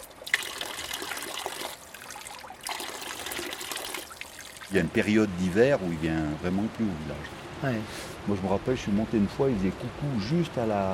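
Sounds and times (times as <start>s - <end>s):
fountain water running: 0.0s - 5.8s
speech: 4.7s - 10.9s.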